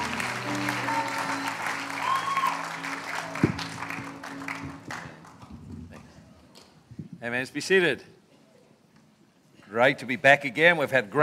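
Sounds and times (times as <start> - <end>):
audience applause: 0.0 - 5.5
speech: 7.2 - 8.1, 9.7 - 11.2.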